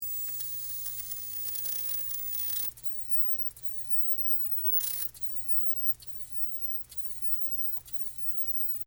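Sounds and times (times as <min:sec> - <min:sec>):
large tube television static: 0:00.0 - 0:08.8.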